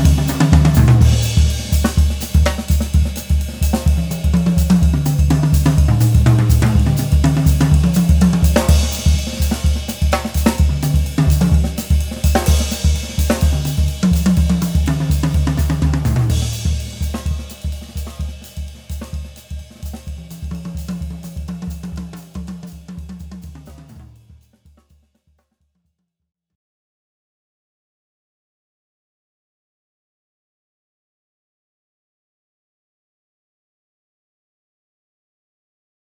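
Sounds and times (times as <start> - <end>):
Canopus Ash drum kit with high tuning: 0.0 - 24.8.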